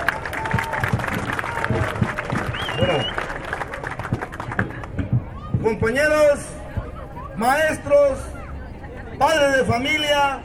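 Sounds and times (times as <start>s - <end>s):
crowd applause at a teachers' march rally in Chiapa de Corzo, Chiapas: 0.0s - 5.0s
crowd murmuring at a teachers' march rally: 0.0s - 10.4s
speech: 5.7s - 6.5s, 7.4s - 8.3s, 9.2s - 10.4s.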